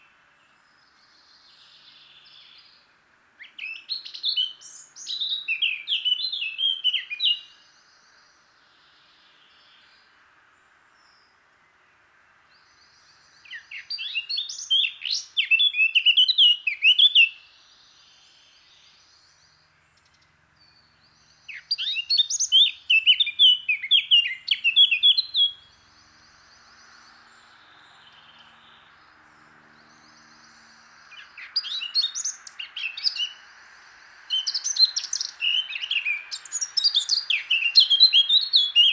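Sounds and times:
faint hiss: 0:00.0 - 0:38.9
Eurasian blackcap song: 0:03.4 - 0:08.2, 0:12.7 - 0:33.5, 0:34.2 - 0:38.9.

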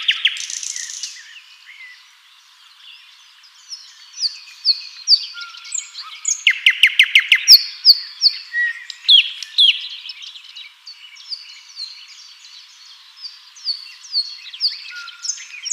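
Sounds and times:
common nightingale Luscinia megarhynchos chirps, rattles and whistles: 0:00.0 - 0:02.1, 0:03.7 - 0:10.4, 0:13.2 - 0:15.7.

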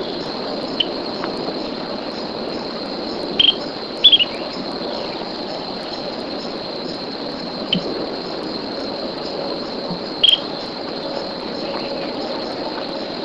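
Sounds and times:
shrill insect drone: 0:00.0 - 0:13.2
bird chirping: 0:03.4 - 0:05.2, 0:10.2 - 0:10.6.

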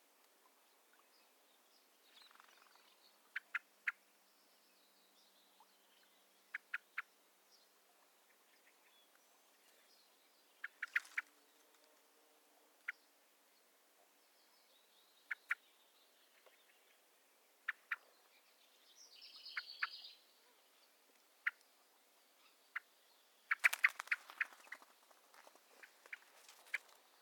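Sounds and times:
common blackbird calls: 0:02.1 - 0:04.0, 0:08.3 - 0:11.9, 0:15.2 - 0:17.0, 0:17.6 - 0:20.8, 0:22.4 - 0:27.2.

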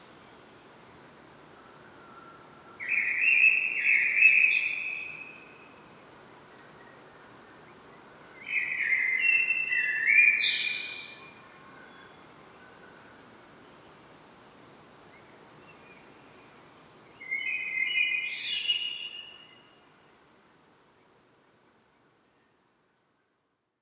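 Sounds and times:
Common blackbird song: 0:02.2 - 0:05.8, 0:06.5 - 0:13.8, 0:15.1 - 0:20.1.

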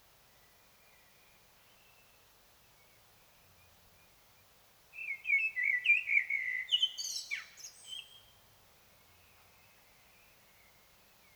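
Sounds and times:
Common blackbird singing: 0:05.0 - 0:08.3.

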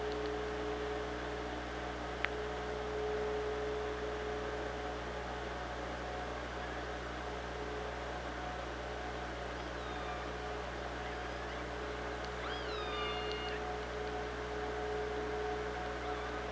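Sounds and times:
low mechanical hum: 0:00.0 - 0:16.4
killer whale calls: 0:11.0 - 0:13.8, 0:15.9 - 0:16.4.

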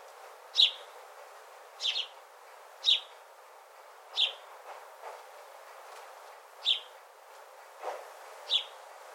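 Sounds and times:
house sparrow chirping: 0:00.5 - 0:00.9, 0:01.8 - 0:02.2, 0:02.8 - 0:03.1, 0:04.1 - 0:04.4, 0:06.6 - 0:06.9, 0:08.5 - 0:08.8.

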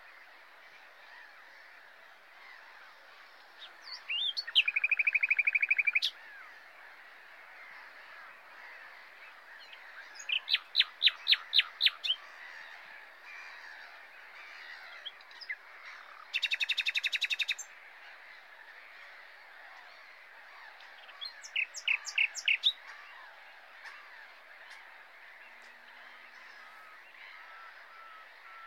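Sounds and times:
common nightingale singing: 0:03.6 - 0:06.2, 0:09.6 - 0:12.2, 0:14.9 - 0:17.7, 0:20.8 - 0:23.2.

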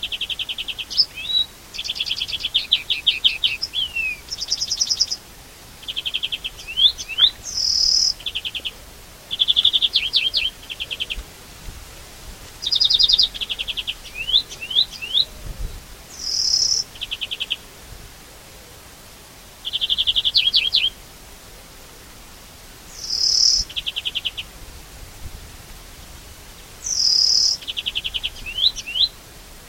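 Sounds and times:
European greenfinch song: 0:00.0 - 0:05.2, 0:05.8 - 0:11.2, 0:12.6 - 0:15.4, 0:16.1 - 0:17.6, 0:19.6 - 0:21.0, 0:22.9 - 0:24.5, 0:26.8 - 0:29.2.

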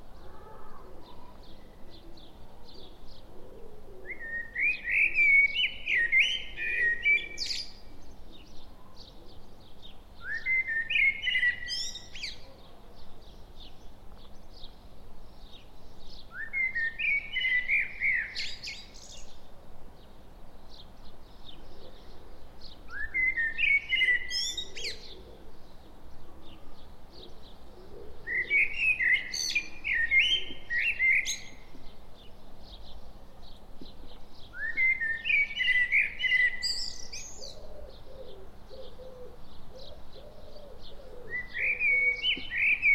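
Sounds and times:
dove cooing: 0:00.0 - 0:04.8, 0:23.9 - 0:25.6, 0:26.3 - 0:29.2, 0:37.4 - 0:42.9
Common blackbird song: 0:00.0 - 0:42.9
faint high chirps from other birds: 0:00.0 - 0:42.9.

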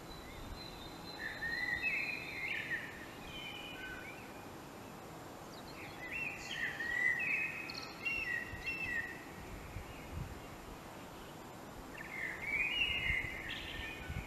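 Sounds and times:
common blackbird song: 0:00.0 - 0:14.2.

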